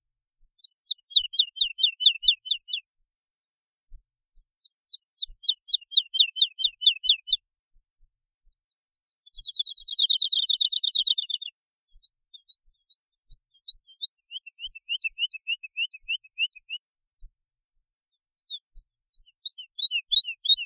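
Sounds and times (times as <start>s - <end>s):
woodlark singing: 0.6s - 2.8s, 4.6s - 7.4s, 9.2s - 16.8s, 18.4s - 20.6s.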